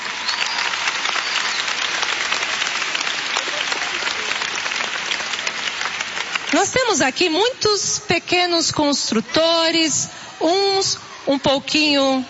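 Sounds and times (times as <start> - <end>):
audience applauding: 0.0 - 7.4
speech: 6.6 - 12.2.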